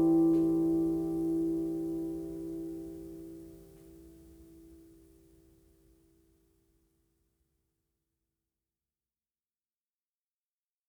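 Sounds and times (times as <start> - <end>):
guitar playing A minor pentatonic scale: 0.0 - 2.4.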